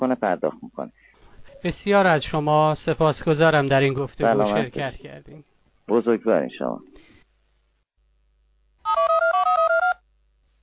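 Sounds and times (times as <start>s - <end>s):
speech: 0.0s - 6.9s
telephone ringing tone on an outgoing call from a radio station: 8.9s - 10.0s.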